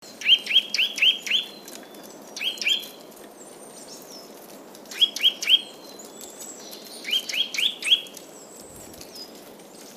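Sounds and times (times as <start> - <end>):
Eurasian nuthatch whistling calls: 0.2 - 1.6, 4.9 - 5.7, 7.0 - 8.1.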